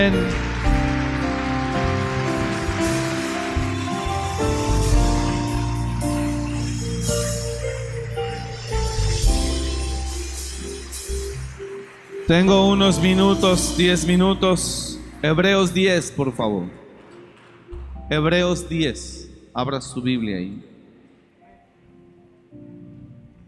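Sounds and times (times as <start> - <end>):
speech: 0.0 - 0.5, 12.3 - 16.8, 18.1 - 20.7
audience applause: 0.0 - 14.4.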